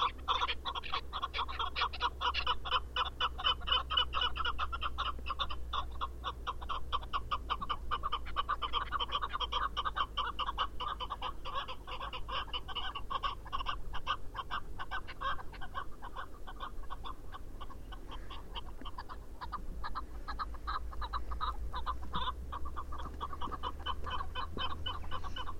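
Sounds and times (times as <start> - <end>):
chukar partridge clucking: 0.0 - 25.5.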